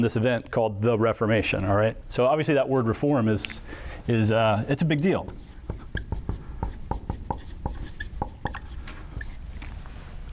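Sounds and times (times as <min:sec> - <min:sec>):
speech: 0:00.0 - 0:05.5
chalk or marker writing on a board: 0:05.1 - 0:09.4.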